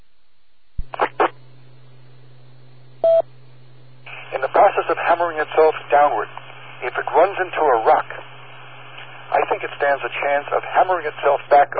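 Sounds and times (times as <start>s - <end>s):
radio repeater time-out signal: 0.8s - 1.4s, 4.0s - 11.7s
speech: 4.3s - 8.2s, 9.3s - 11.7s.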